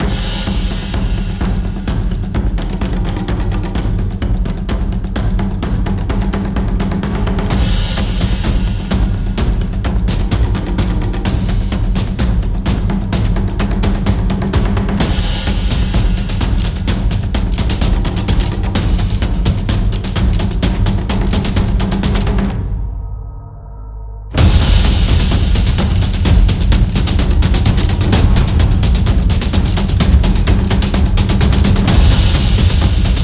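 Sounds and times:
taiko drums: 0.0s - 23.2s, 24.3s - 33.2s.

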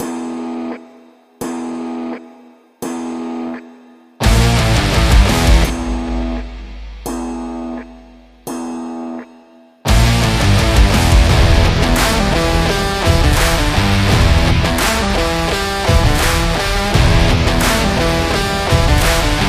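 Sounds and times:
sport and action music: 2.8s - 9.3s, 9.9s - 19.4s.

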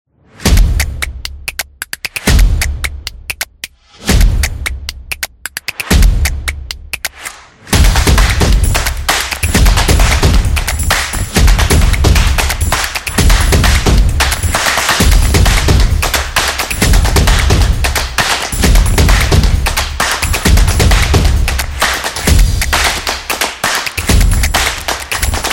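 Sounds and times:
music beat: 0.5s - 25.5s.

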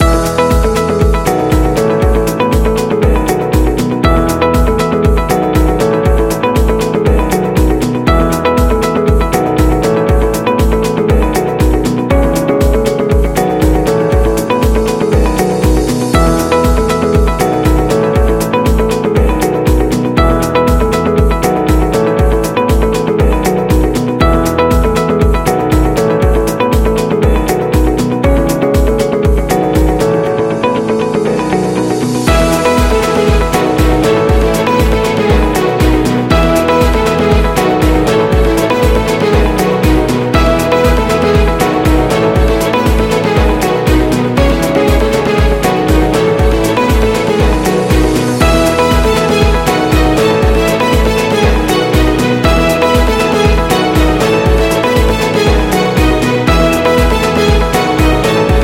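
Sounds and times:
positive corporate music loop: 0.0s - 58.6s.

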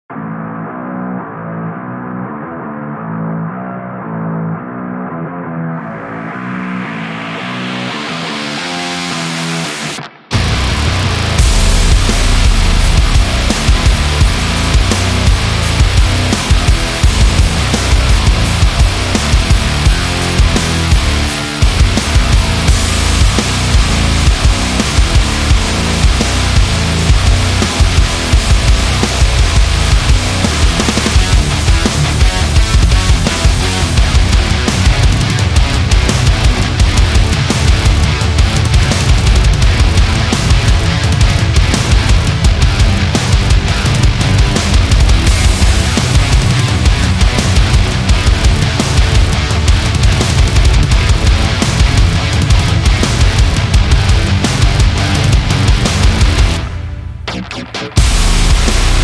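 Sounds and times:
heavy metal music: 0.1s - 59.0s.

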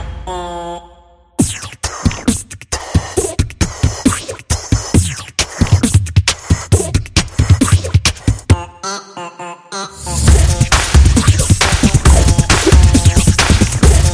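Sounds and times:
energetic beatbox: 1.4s - 8.6s, 10.3s - 14.1s.

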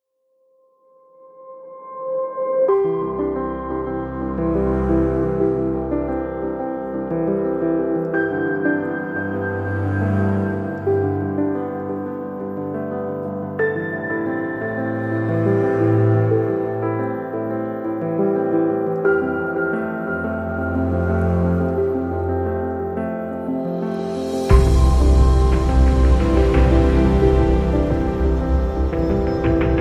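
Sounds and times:
inspiring ambient piano: 0.3s - 29.7s.

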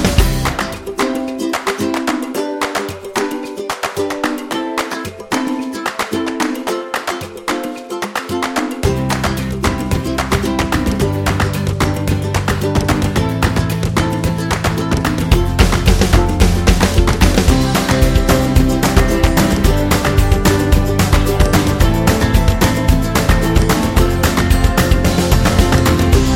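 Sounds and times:
folk birthday song: 0.2s - 26.3s.

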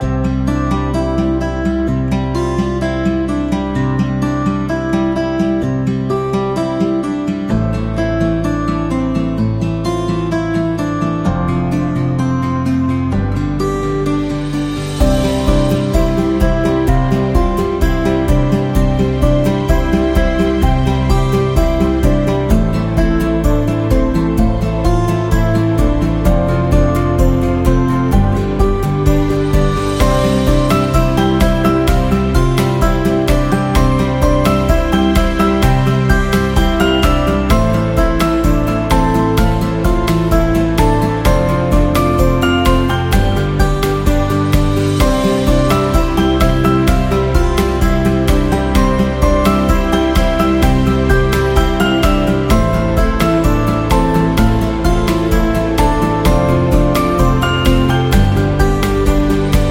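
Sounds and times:
acoustic love music: 0.0s - 59.7s.

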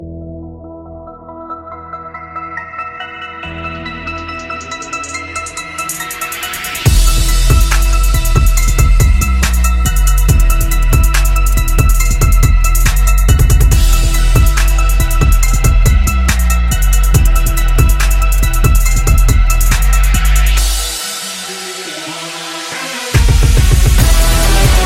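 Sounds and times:
dark trap beat: 2.5s - 24.8s.

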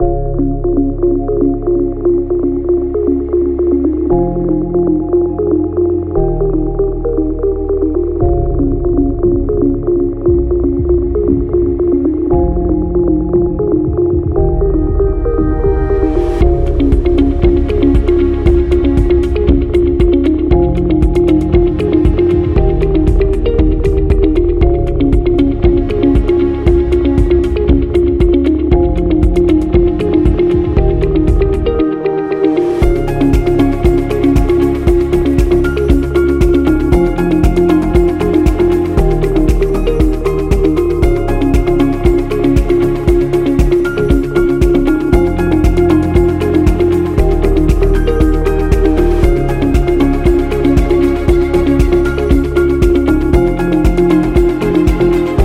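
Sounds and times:
corporate tech music: 0.0s - 55.4s.

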